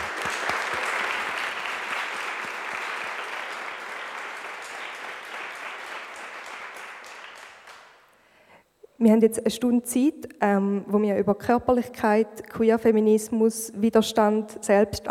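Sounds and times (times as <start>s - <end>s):
audience applause: 0.0s - 8.0s
speech: 9.0s - 15.0s.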